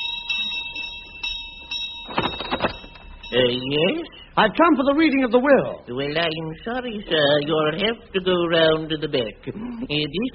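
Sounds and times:
doorbell ringing: 0:00.0 - 0:04.1
speech: 0:03.3 - 0:10.3.

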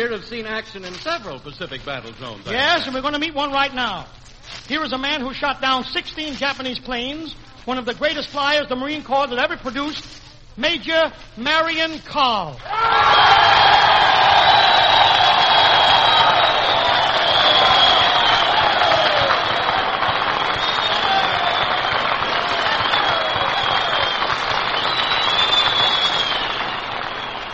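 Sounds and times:
speech: 0:00.0 - 0:14.0
crowd of Marines cheering and applauding: 0:12.6 - 0:27.5.

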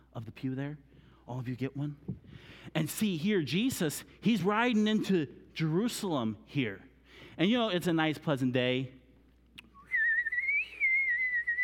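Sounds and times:
speech: 0:00.2 - 0:09.0
whistled imitation of birds singing: 0:09.7 - 0:11.6.

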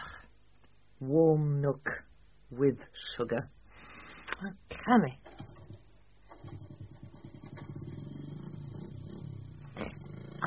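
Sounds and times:
speech: 0:01.0 - 0:03.6, 0:04.4 - 0:05.3
motorbike engine: 0:06.3 - 0:10.4.

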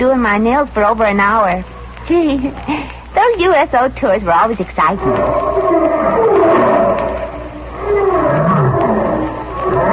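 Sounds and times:
speech: 0:00.0 - 0:06.2
lion roaring: 0:05.0 - 0:09.9.

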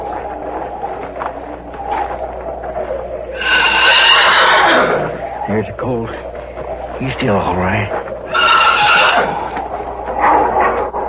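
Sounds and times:
wolf trapped in a pit: 0:00.0 - 0:11.0
speech: 0:05.6 - 0:06.2, 0:07.0 - 0:08.0.

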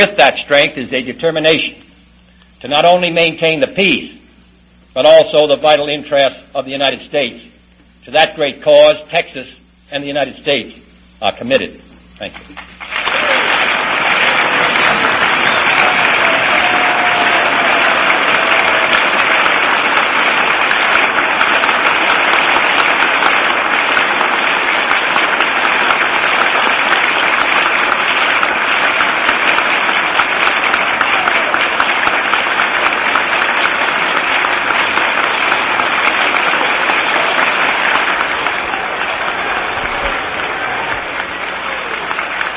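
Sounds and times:
speech: 0:00.0 - 0:01.9, 0:02.6 - 0:04.2, 0:05.0 - 0:13.4
large audience applause after a presidential speech: 0:12.3 - 0:42.5.

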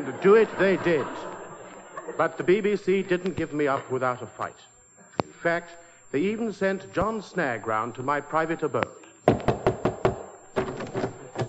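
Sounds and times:
speech: 0:00.0 - 0:01.3, 0:02.1 - 0:04.7, 0:05.4 - 0:09.0
laughter: 0:00.0 - 0:04.2
knocking at a door: 0:09.3 - 0:11.4.

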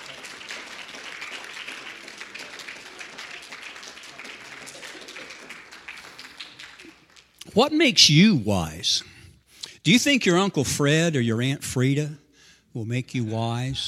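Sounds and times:
audience clapping hands: 0:00.0 - 0:07.8
speech: 0:07.6 - 0:09.1, 0:09.8 - 0:13.8.

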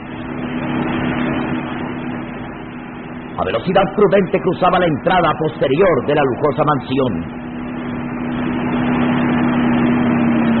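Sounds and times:
car driving: 0:00.0 - 0:10.5
speech: 0:03.4 - 0:07.4.

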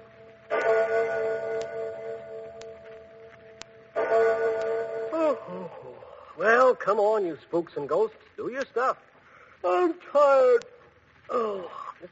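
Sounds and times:
clock bell striking three: 0:00.0 - 0:05.6
speech: 0:06.7 - 0:10.7, 0:11.3 - 0:12.1.

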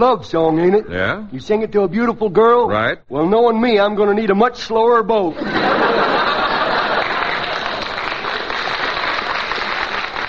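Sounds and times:
speech: 0:00.0 - 0:06.0
laughter: 0:05.3 - 0:08.2
audience applause: 0:05.9 - 0:10.2.

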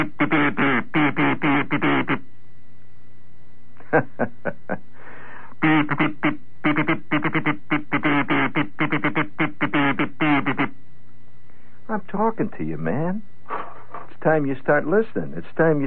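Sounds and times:
kazoo: 0:00.0 - 0:02.2, 0:05.6 - 0:10.8
speech: 0:00.0 - 0:02.2, 0:03.9 - 0:04.9, 0:05.6 - 0:10.9, 0:11.9 - 0:15.8.

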